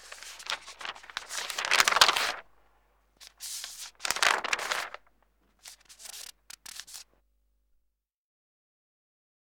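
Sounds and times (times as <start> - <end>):
newspaper page turning: 0.0 - 2.6, 3.2 - 7.0.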